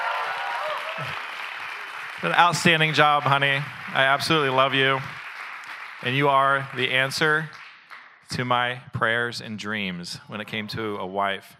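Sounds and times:
audience applause: 0:00.0 - 0:08.0
speech: 0:02.2 - 0:05.2, 0:06.0 - 0:07.6, 0:08.3 - 0:11.5.

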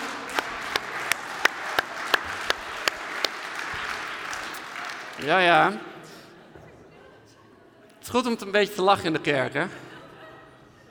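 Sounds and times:
audience applause for the band: 0:00.0 - 0:05.7
speech: 0:05.2 - 0:05.9, 0:08.1 - 0:09.9
laughter: 0:09.6 - 0:10.8.

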